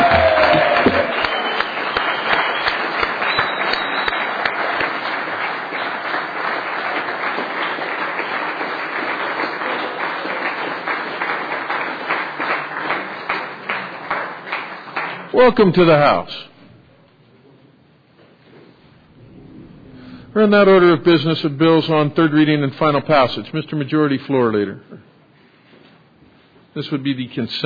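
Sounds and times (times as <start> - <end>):
crowd applauding: 0.0 - 15.6
speech: 15.5 - 16.5, 20.4 - 25.1, 26.8 - 27.6.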